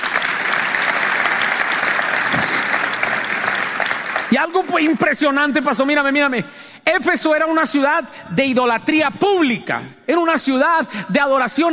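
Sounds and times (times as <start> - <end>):
audience applause: 0.0 - 6.2
speech: 4.3 - 11.7.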